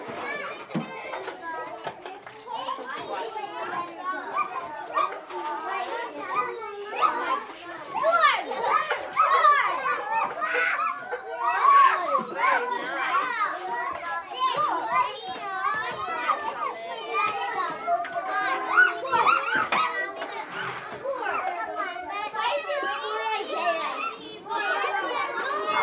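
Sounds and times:
kindergarten ambience: 0.0 - 25.8.

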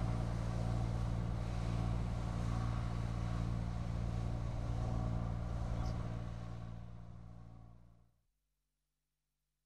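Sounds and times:
grain combine harvester: 0.0 - 7.3.

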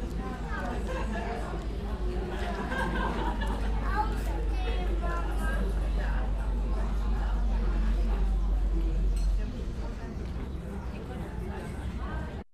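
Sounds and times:
street cafe ambience: 0.0 - 12.5
laughter: 0.6 - 4.1.

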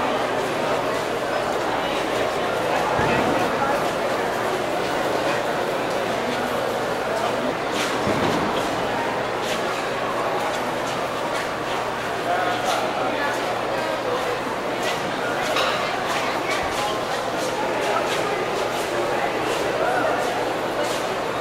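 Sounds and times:
crowd at night: 0.0 - 21.4.

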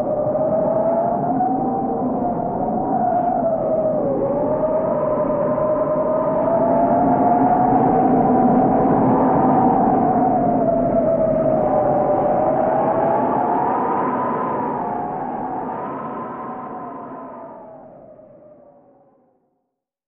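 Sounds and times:
hurricane wind howling: 0.0 - 18.8.

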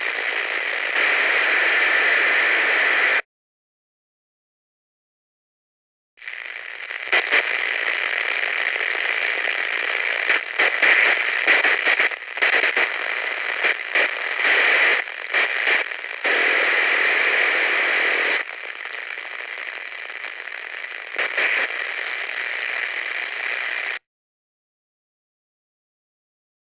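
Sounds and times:
walkie-talkie noise: 0.0 - 3.2, 6.2 - 24.0.

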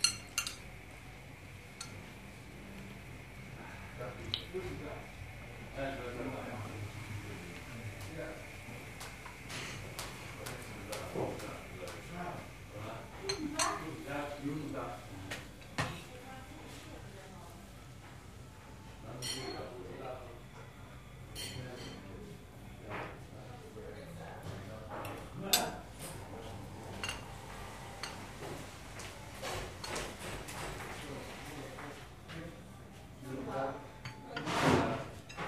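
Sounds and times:
cafe background noise: 0.0 - 35.4.

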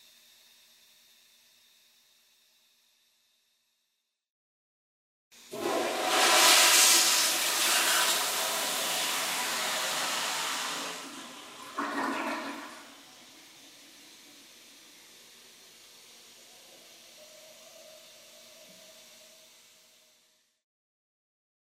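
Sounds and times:
toilet flushing: 5.4 - 15.0.

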